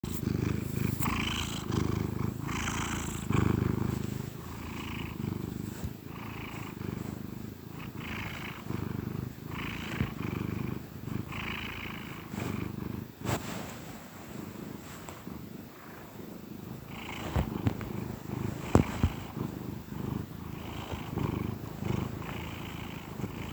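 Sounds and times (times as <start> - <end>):
soft rustling: 0.0 - 7.5, 12.3 - 23.5
domestic cat purring: 0.0 - 23.5.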